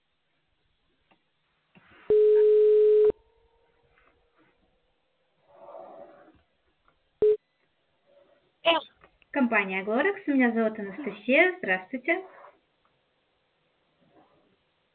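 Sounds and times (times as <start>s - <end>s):
telephone ringback tone beep: 2.1s - 3.1s, 7.2s - 7.4s
speech: 9.4s - 12.4s.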